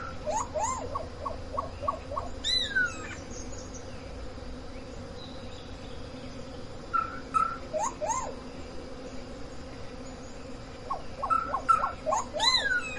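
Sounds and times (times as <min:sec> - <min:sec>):
solitary black cacique whistling and chattering: 0:00.2 - 0:03.0, 0:07.0 - 0:08.3, 0:11.2 - 0:12.9.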